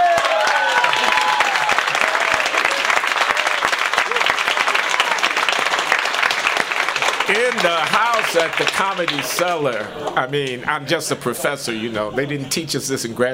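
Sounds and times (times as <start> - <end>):
whoops and cheers: 0.0 - 5.5
audience applause at the Comedy Cellar: 0.0 - 10.6
speech: 7.6 - 13.3.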